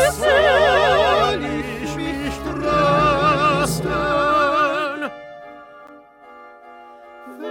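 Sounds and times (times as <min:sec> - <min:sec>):
full ensemble playing: 0:00.2 - 0:05.9.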